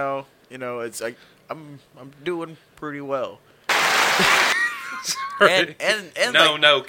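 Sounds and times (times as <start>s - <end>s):
speech: 0.0s - 3.6s, 4.2s - 6.8s
canned applause from a sound button: 3.7s - 5.2s.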